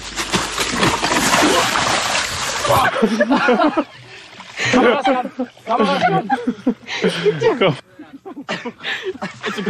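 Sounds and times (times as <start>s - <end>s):
big splash of person falling into water: 0.1s - 2.9s
laughter: 2.5s - 9.6s.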